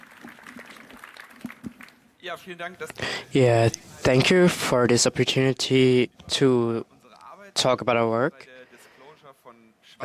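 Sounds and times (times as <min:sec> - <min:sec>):
audience applause: 0:00.0 - 0:02.0
speech: 0:02.2 - 0:06.9, 0:07.6 - 0:08.5.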